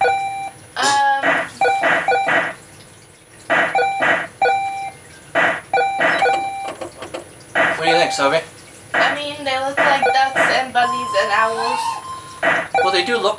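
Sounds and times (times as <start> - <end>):
retro video game shooting gallery buzzy beeps: 0.0 - 2.6, 3.5 - 6.8, 7.6 - 8.4, 9.0 - 9.2, 9.8 - 13.3
retro video game shooting gallery rising electronic chirp: 0.0 - 2.6, 3.5 - 6.8, 7.6 - 8.4, 9.0 - 9.2, 9.8 - 13.3
speech: 8.1 - 8.5, 12.8 - 13.3.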